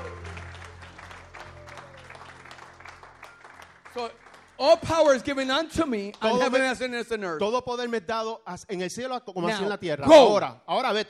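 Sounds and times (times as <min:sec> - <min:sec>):
crowd clapping: 0:00.0 - 0:07.2
speech: 0:04.0 - 0:11.0.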